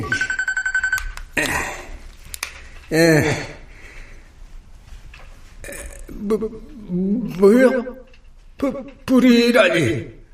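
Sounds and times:
mobile phone ringing: 0.0s - 1.2s
speech: 2.9s - 3.5s, 6.2s - 8.0s, 8.6s - 10.2s.

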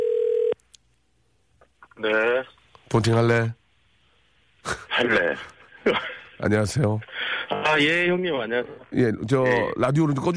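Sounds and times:
telephone dial tone while placing call: 0.0s - 0.6s
speech: 2.0s - 3.6s, 4.6s - 10.3s
laughter: 4.6s - 6.4s.

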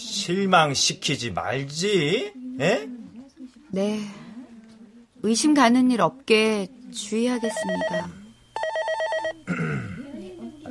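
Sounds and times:
speech: 0.2s - 3.1s, 3.7s - 4.2s, 5.2s - 8.2s
telephone at a shopping mall customer call center ringing: 7.3s - 9.5s.

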